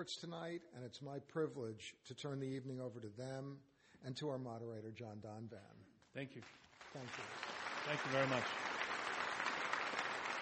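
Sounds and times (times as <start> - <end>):
speech: 0.0 - 8.7
audience applause: 6.4 - 10.4.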